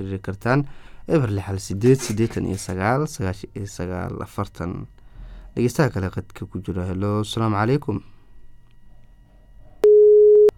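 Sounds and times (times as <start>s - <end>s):
speech: 0.0s - 5.0s, 5.6s - 8.1s
faint hum: 0.0s - 10.5s
telephone busy tone after a caller's line drops: 9.8s - 10.5s.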